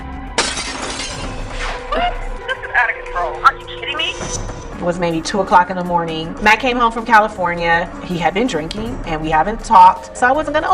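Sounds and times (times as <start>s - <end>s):
window glass shattering from a kick: 0.4s - 1.8s
speech: 3.3s - 10.7s.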